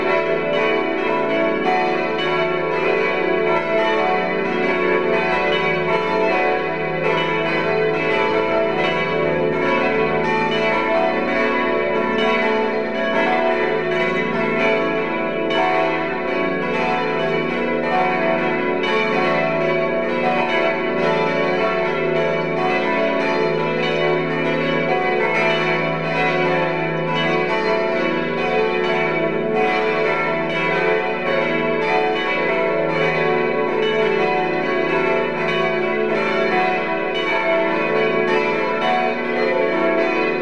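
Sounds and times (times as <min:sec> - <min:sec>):
church bells ringing: 0:00.0 - 0:40.4.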